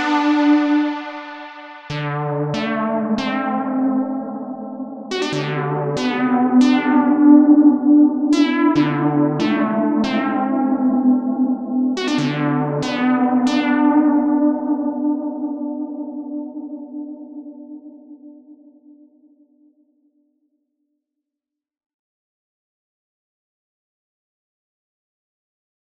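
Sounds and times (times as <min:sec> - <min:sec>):
analog synthesizer: 0:00.0 - 0:18.8.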